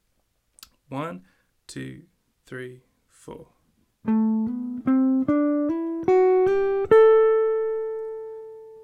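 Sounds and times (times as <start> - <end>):
speech: 0.9 - 4.2
jazz guitar Dorian scale with hammer-ons: 4.0 - 8.8.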